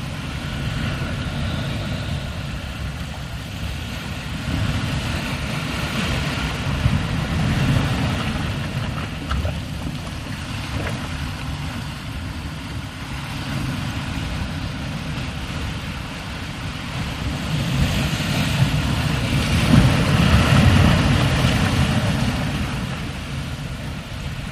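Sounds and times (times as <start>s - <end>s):
steady heavy surf: 0.0s - 24.4s
waves: 0.0s - 24.4s.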